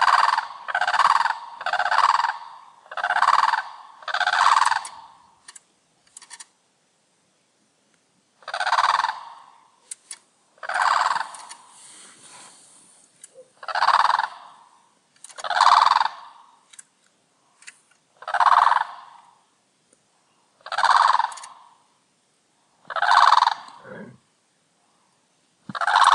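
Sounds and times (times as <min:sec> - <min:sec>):
bird rattling gobbling bursts: 0:00.0 - 0:05.4, 0:08.4 - 0:09.6, 0:10.6 - 0:12.5, 0:13.5 - 0:16.7, 0:18.2 - 0:19.3, 0:20.6 - 0:21.8, 0:22.9 - 0:24.0, 0:25.7 - 0:26.1
faint clicks: 0:04.6 - 0:06.6, 0:16.7 - 0:18.1.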